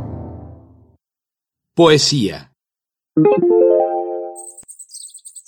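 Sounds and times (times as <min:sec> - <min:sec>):
speech: 0:01.8 - 0:02.5, 0:03.2 - 0:03.9
cenzontle mockingbird singing in the forest: 0:04.4 - 0:05.4.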